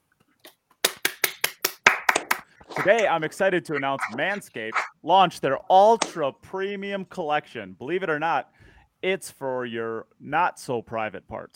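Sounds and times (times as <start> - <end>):
small round of applause: 0.8 - 3.0
speech: 2.8 - 11.5.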